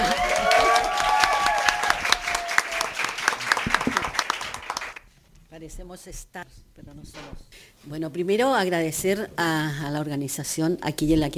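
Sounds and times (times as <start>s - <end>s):
audience applause: 0.0s - 5.0s
speech: 6.0s - 11.3s.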